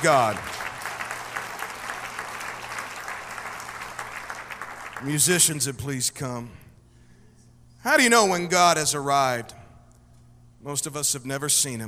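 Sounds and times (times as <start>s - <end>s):
speech: 0.0s - 0.6s, 5.0s - 6.6s, 7.8s - 9.6s, 10.6s - 11.8s
audience clapping: 0.0s - 5.5s.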